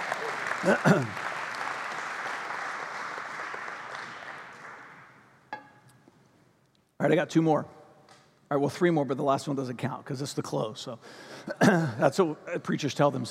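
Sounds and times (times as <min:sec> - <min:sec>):
audience clapping: 0:00.0 - 0:05.3
speech: 0:00.6 - 0:01.2, 0:07.0 - 0:07.8, 0:08.5 - 0:13.2.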